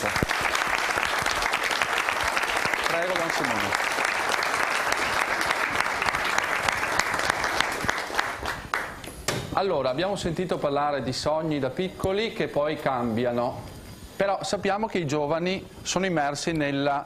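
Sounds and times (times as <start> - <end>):
audience applause: 0.0 - 9.0
speech: 9.6 - 17.0.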